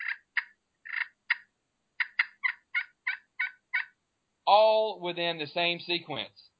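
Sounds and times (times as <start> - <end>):
turkey yelping raspy calls: 0.0 - 4.0
speech: 4.5 - 6.5.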